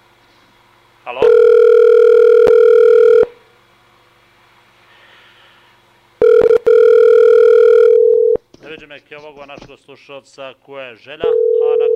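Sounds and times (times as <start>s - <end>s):
speech: 1.0s - 1.4s, 8.8s - 11.9s
telephone ringing down the line: 1.2s - 3.4s, 6.2s - 8.4s, 11.2s - 11.9s.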